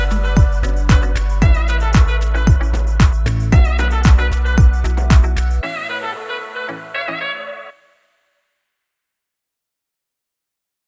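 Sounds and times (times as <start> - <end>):
pop EDM music: 0.0 - 7.7.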